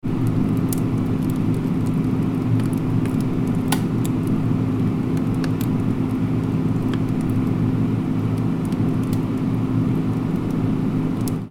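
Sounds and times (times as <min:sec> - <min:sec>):
freezer interior ambience: 0:00.0 - 0:11.5.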